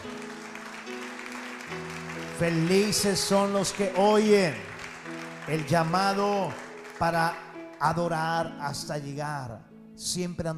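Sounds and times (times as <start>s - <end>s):
audience applause: 0.0s - 8.2s
speech: 2.4s - 4.7s, 5.5s - 10.5s.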